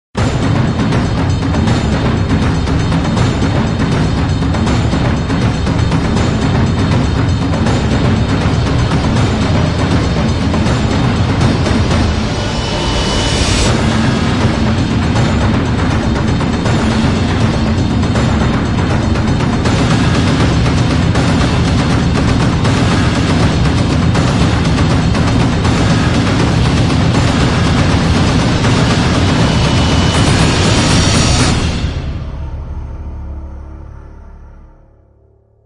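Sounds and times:
trailer drums: 0:00.2 - 0:35.6.

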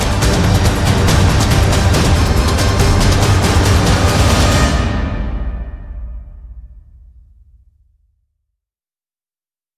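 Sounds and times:
percussion: 0:00.0 - 0:07.6.

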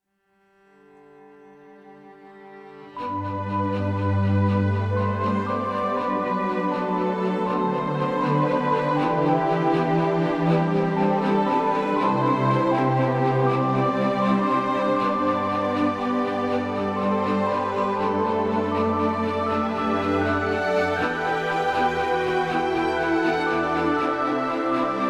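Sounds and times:
ambient music: 0:01.2 - 0:25.0.

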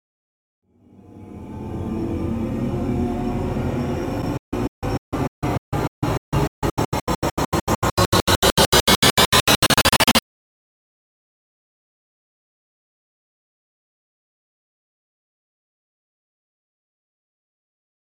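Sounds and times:
riser: 0:00.9 - 0:10.2.

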